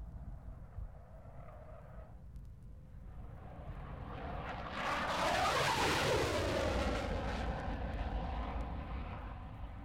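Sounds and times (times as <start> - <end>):
Lightning jet fighter flying past with reheat lit: 3.6 - 9.8.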